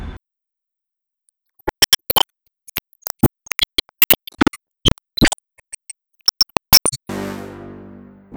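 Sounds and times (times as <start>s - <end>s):
music loop: 1.6s - 7.1s.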